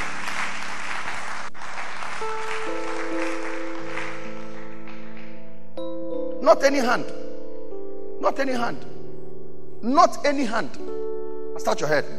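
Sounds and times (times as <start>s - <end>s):
audience clapping hands: 0.0s - 5.8s
sustained organ-like chords: 1.6s - 12.1s
speech: 6.5s - 7.2s, 8.2s - 8.9s, 9.8s - 11.0s, 11.6s - 12.1s.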